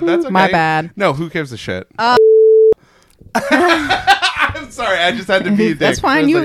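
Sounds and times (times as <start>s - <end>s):
speech: 0.0s - 2.2s, 3.4s - 6.4s
censor beep tone: 2.2s - 2.8s
laughter: 3.3s - 5.8s.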